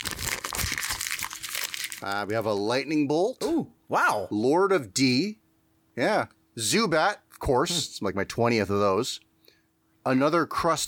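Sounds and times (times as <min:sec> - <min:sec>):
foil booster pack crinkling and tearing open: 0:00.0 - 0:02.5
speech: 0:02.0 - 0:05.4, 0:06.0 - 0:09.3, 0:10.0 - 0:10.8.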